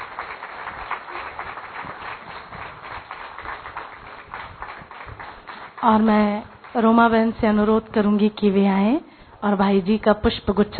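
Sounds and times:
standing audience applauding to welcome a guest at a spiritual gathering: 0:00.0 - 0:06.8
speech: 0:05.8 - 0:10.7.

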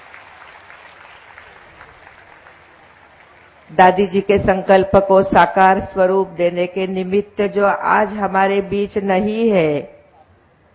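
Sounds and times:
loud applause welcoming a guest: 0:00.0 - 0:03.7
speech: 0:03.7 - 0:10.0.

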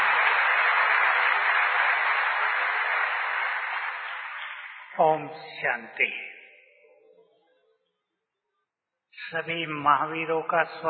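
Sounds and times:
audience applause: 0:00.0 - 0:05.0
speech: 0:05.0 - 0:06.4, 0:09.3 - 0:10.8.

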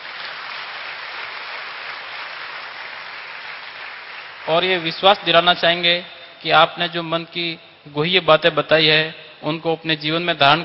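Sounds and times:
crowd applauding: 0:00.0 - 0:05.2
speech: 0:04.5 - 0:10.6.

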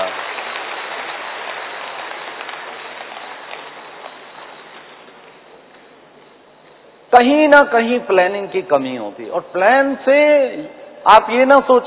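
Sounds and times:
crowd applauding: 0:00.0 - 0:05.6
speech: 0:07.1 - 0:11.8.

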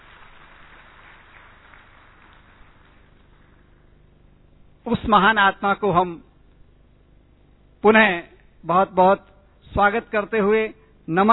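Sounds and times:
audience applause at a welcome ceremony: 0:00.0 - 0:03.8
speech: 0:04.9 - 0:06.3, 0:07.8 - 0:11.3.

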